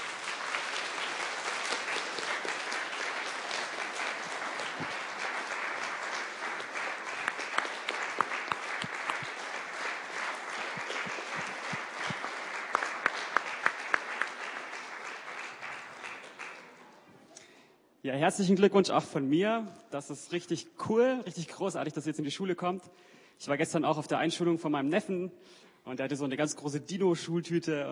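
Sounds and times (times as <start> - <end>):
audience applause: 0.0 - 17.0
speech: 18.1 - 27.8.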